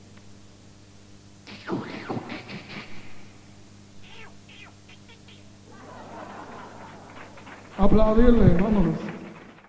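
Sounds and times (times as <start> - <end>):
drum kit: 1.5 - 3.3
laughter: 5.0 - 8.2.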